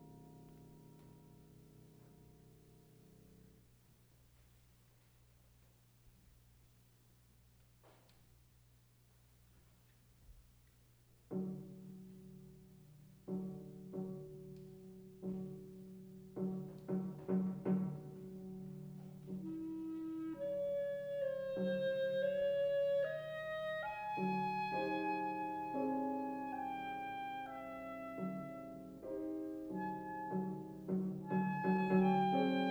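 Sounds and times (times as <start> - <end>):
piano: 0.0 - 3.8, 11.2 - 32.6
clarinet: 16.5 - 32.6.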